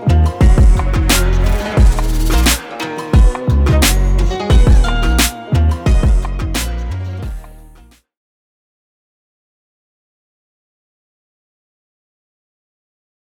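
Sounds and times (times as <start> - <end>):
hip hop music: 0.0 - 8.0.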